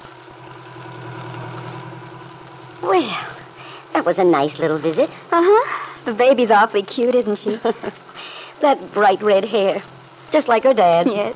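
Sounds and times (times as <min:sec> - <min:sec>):
car driving along a country road: 0:00.0 - 0:08.1
speech: 0:02.8 - 0:03.4, 0:04.0 - 0:08.0, 0:08.6 - 0:11.3.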